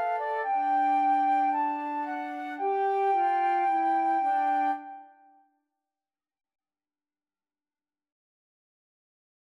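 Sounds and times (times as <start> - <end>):
flute trio: 0.0 - 5.2.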